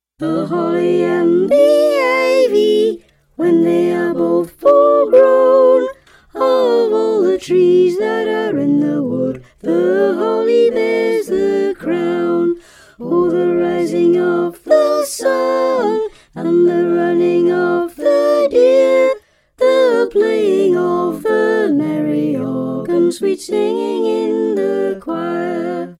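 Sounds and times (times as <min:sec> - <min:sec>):
soprano singing a carol: 0:00.2 - 0:25.9.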